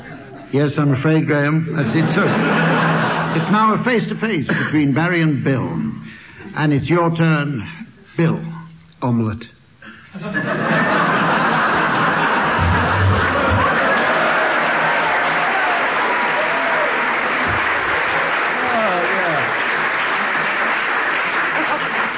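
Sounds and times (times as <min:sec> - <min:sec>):
laughter: 0:00.0 - 0:00.5, 0:01.6 - 0:03.8, 0:10.1 - 0:22.1
speech: 0:00.5 - 0:02.7, 0:03.3 - 0:05.9, 0:06.6 - 0:10.8
studio audience applause: 0:10.7 - 0:22.1.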